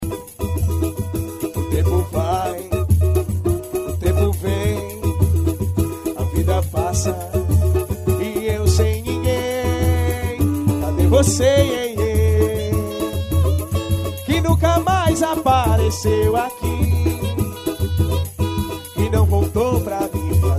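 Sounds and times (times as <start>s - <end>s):
samba music: 0.0s - 20.5s.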